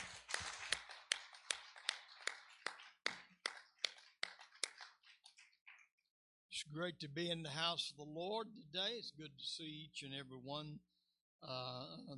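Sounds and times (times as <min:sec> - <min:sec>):
audience clapping hands: 0:00.0 - 0:06.0
speech: 0:06.7 - 0:12.1.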